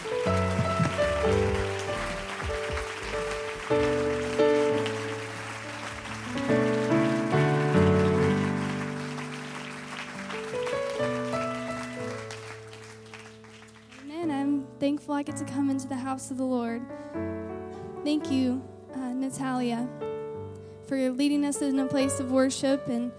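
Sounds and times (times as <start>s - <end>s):
audience hand clapping applause: 0.0s - 14.1s
speech: 15.2s - 17.3s, 18.0s - 18.7s, 19.3s - 20.0s, 20.9s - 23.1s.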